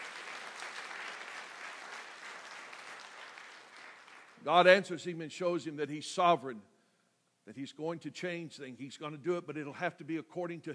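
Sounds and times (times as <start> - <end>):
audience clapping: 0.0 - 4.5
speech: 4.4 - 6.7, 7.5 - 10.7.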